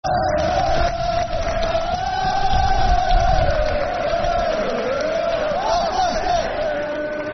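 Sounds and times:
football crowd chanting: 0.0 - 7.3.

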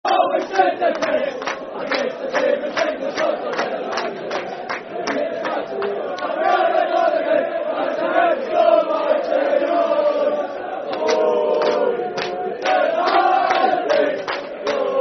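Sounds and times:
football crowd chanting: 0.1 - 15.0.

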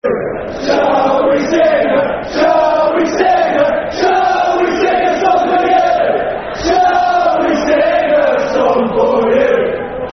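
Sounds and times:
football crowd chanting: 0.0 - 10.1.

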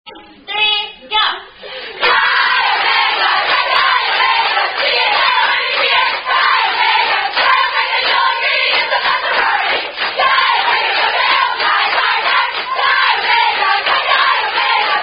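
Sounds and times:
sorority members chanting songs: 1.9 - 15.0.

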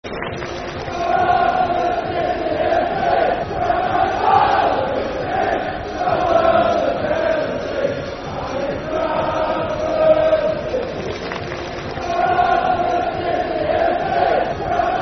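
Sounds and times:
football crowd chanting: 0.4 - 15.0.

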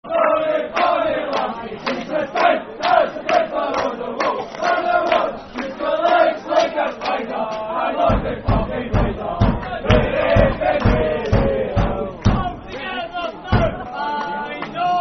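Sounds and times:
football chant: 0.0 - 15.0.

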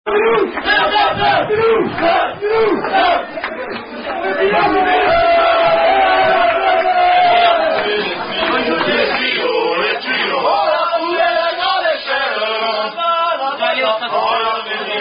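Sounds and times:
French rugby songs: 0.1 - 15.0.

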